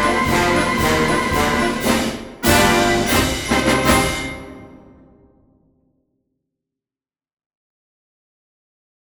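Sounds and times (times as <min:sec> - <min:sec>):
concert band playing: 0:00.0 - 0:05.0.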